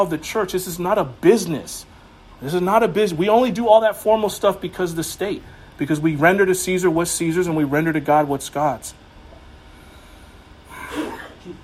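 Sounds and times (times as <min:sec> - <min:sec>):
speech: 0:00.0 - 0:09.0
sneeze: 0:10.7 - 0:11.6.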